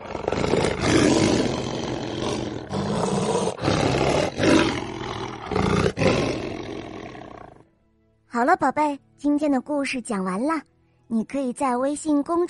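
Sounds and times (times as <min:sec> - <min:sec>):
lion roaring: 0:00.0 - 0:07.6
speech: 0:08.4 - 0:12.4.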